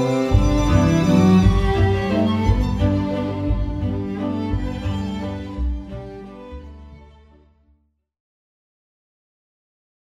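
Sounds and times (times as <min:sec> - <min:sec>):
waltz music: 0:00.0 - 0:07.6.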